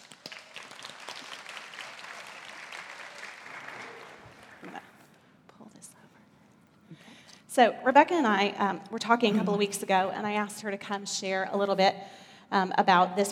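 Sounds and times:
audience applause welcoming a guest at a faith gathering: 0.0s - 5.0s
speech: 7.6s - 13.3s
people murmuring: 9.2s - 10.0s.

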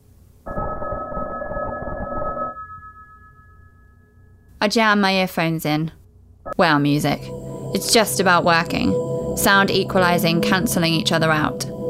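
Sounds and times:
telephone ringing next door: 0.5s - 3.8s
speech: 4.6s - 6.0s, 6.6s - 11.7s.

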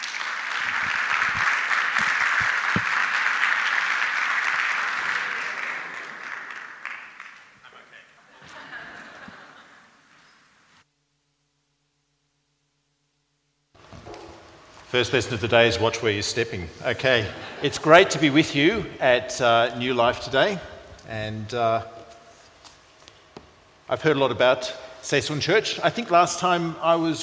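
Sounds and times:
audience applause in a church welcoming a guest speaker: 0.0s - 10.0s
laughter: 4.9s - 6.7s, 7.7s - 10.2s, 17.0s - 18.4s
speech: 14.9s - 22.0s, 23.9s - 27.2s.

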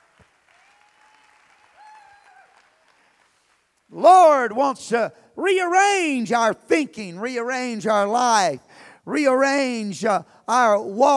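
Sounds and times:
audience clapping hands: 0.0s - 3.9s
whistles and cheers: 0.5s - 2.9s
speech: 3.9s - 11.1s.

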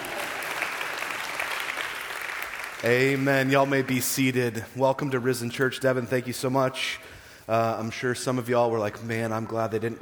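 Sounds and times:
audience applause: 0.0s - 4.0s
speech: 2.8s - 10.0s.

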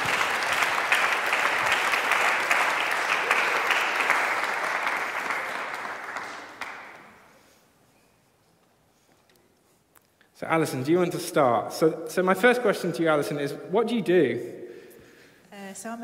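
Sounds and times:
audience round of applause: 0.0s - 7.3s
speech: 10.5s - 14.6s, 15.8s - 16.0s.

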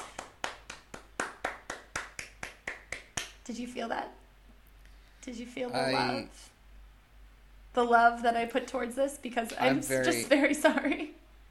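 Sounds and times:
single pair of hands clapping: 0.0s - 3.4s
speech: 3.5s - 4.2s, 5.2s - 6.5s, 7.7s - 11.2s.

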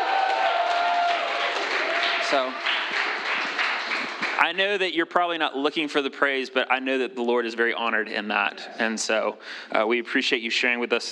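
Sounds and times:
faint voices and cheers: 0.0s - 3.0s
audience applause: 0.0s - 4.8s
speech: 2.3s - 3.0s, 4.5s - 11.1s.

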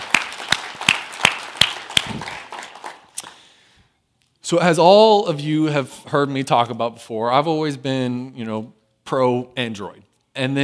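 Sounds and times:
audience applause: 0.0s - 3.2s
speech: 4.5s - 10.6s.

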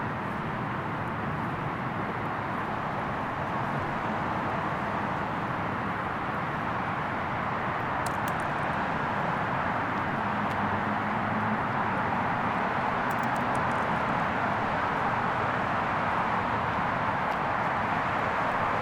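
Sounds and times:
traffic in San Antonio: 0.0s - 18.8s
high clicks: 8.0s - 8.6s, 13.1s - 13.9s.

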